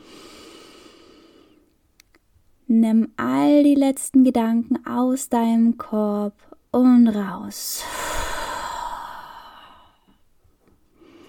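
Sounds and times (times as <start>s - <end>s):
deep inhale during a guided mindfulness meditation: 0.0s - 1.7s, 7.8s - 10.2s, 10.9s - 11.2s
speech: 2.7s - 8.0s.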